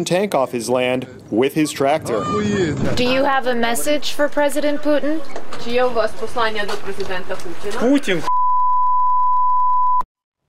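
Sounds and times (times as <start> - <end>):
speech: 0.0 - 8.4
censorship bleep over swear word: 8.2 - 10.0.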